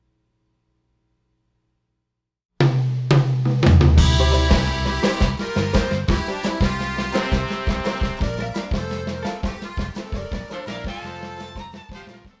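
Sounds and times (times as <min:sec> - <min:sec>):
music: 0:02.6 - 0:12.3.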